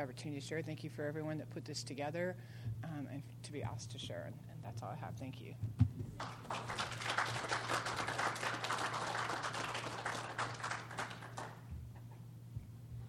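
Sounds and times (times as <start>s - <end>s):
speech: 0.0s - 7.6s
faint low electrical hum: 0.0s - 13.0s
audience applause: 6.2s - 11.6s.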